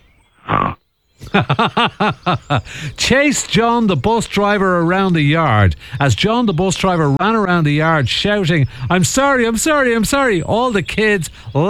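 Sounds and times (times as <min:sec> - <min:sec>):
voice imitating a pig oinking: 0:00.4 - 0:00.8
laughter: 0:01.2 - 0:11.6
speech: 0:01.3 - 0:11.6.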